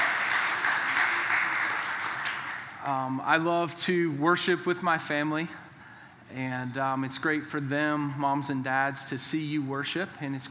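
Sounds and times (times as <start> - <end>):
church congregation applauding during worship to welcome children: 0.0 - 3.0
speech: 2.8 - 5.6, 6.3 - 10.4.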